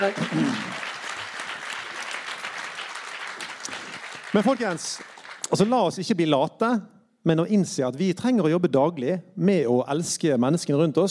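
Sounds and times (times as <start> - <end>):
speech: 0.0 - 0.8, 4.3 - 11.0
audience applause: 0.0 - 5.7.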